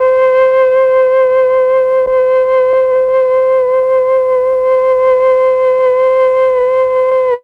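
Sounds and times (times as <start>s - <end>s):
flute: 0.0s - 7.4s.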